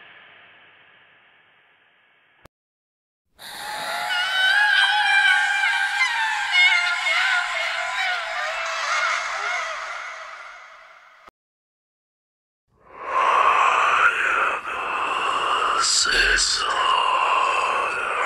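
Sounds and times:
scary horror whispering: 0:03.4 - 0:10.9, 0:12.8 - 0:18.2.

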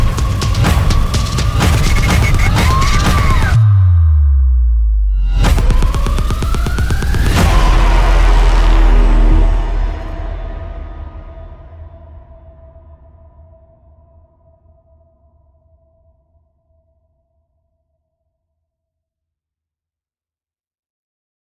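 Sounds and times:
epic dark horror trailer music: 0:00.0 - 0:16.1.

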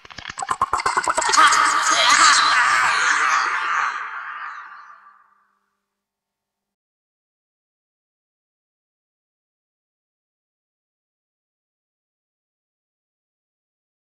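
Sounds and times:
scary horror sounds: 0:00.4 - 0:05.4.

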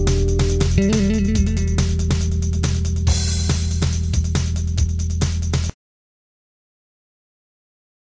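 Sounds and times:
bass: 0:00.0 - 0:05.8.

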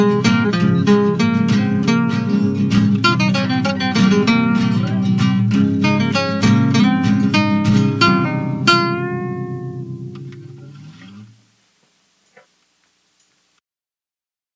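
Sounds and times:
instrumental music: 0:00.0 - 0:11.4.

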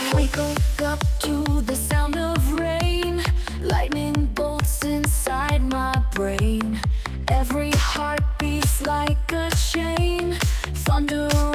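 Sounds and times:
heartbeat: 0:00.1 - 0:11.5.

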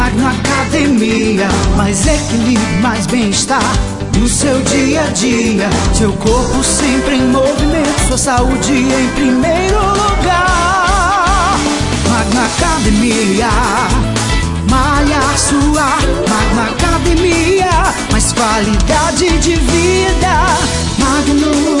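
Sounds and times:
jingle: 0:00.1 - 0:21.6.

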